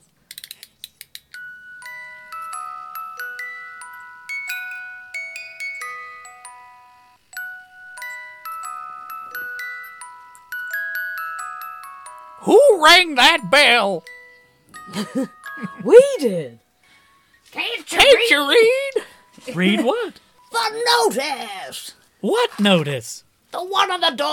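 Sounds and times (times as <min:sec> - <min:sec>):
music box playing: 0:01.3 - 0:21.3
speech: 0:12.4 - 0:14.1, 0:14.9 - 0:16.6, 0:17.9 - 0:18.8, 0:19.4 - 0:24.3.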